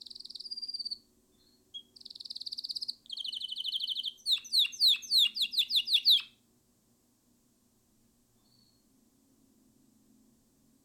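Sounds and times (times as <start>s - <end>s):
canary song: 0.0s - 6.4s.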